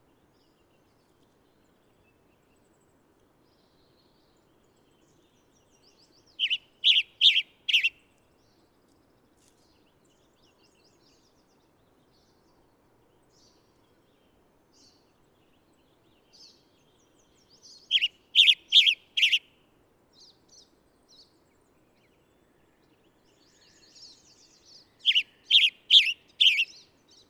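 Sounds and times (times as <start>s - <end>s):
bird song with loud warbled chirping phrases: 4.9s - 8.0s, 14.8s - 19.4s, 23.0s - 27.2s.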